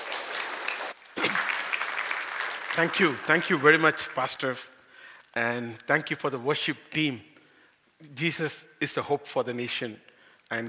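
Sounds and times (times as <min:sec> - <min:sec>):
church audience applause: 0:00.0 - 0:04.2
speech: 0:02.8 - 0:04.7, 0:05.3 - 0:07.3, 0:08.0 - 0:10.6.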